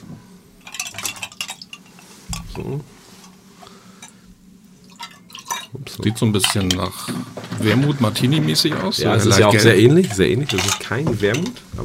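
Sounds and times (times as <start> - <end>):
glass clinking against a hard surface: 0.6 - 2.7, 4.9 - 6.9, 9.3 - 11.6
speech: 2.6 - 3.0, 6.0 - 11.8.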